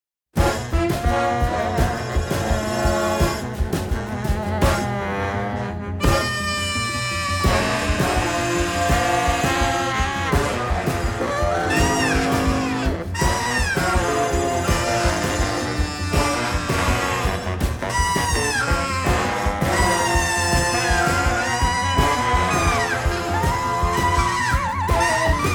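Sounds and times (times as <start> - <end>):
instrumental music: 0.4 - 25.5.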